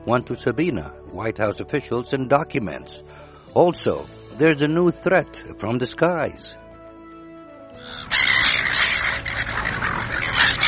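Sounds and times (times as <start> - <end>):
speech: 0.0 - 6.6, 7.8 - 8.3
seagulls squawking: 7.8 - 10.6.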